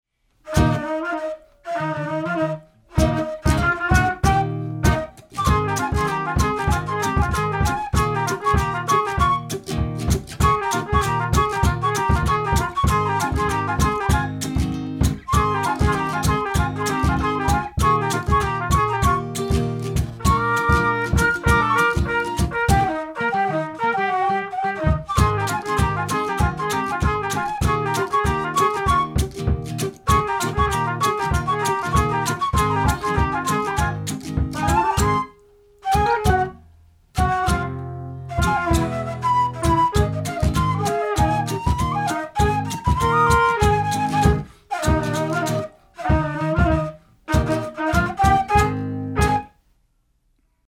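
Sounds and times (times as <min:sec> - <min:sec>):
dixieland trio playing: 0:00.5 - 0:09.6, 0:10.3 - 0:35.3, 0:35.9 - 0:36.5, 0:37.2 - 0:49.5.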